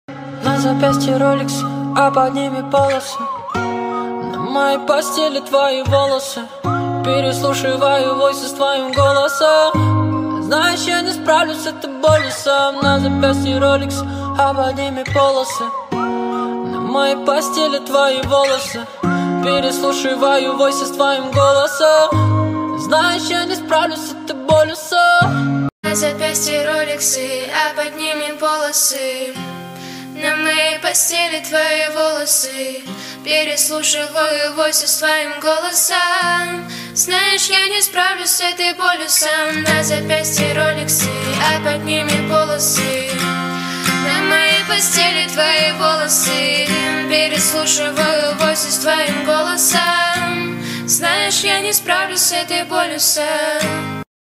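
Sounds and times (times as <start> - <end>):
cover song: 0.1 - 54.0.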